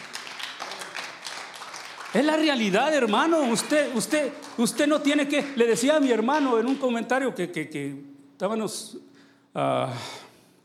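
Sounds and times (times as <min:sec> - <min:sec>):
applause: 0:00.0 - 0:07.1
speech: 0:02.2 - 0:10.2.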